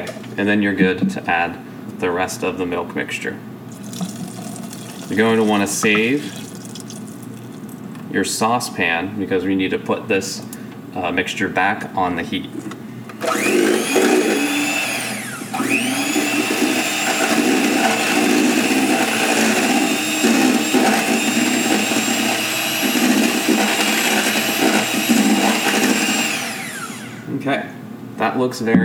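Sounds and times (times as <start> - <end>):
speech: 0.4 - 3.5, 5.1 - 6.4, 8.1 - 12.7, 28.4 - 28.8
electric hand mixer beating milk mixture for eclair pastry cream: 3.9 - 6.9, 13.2 - 27.3.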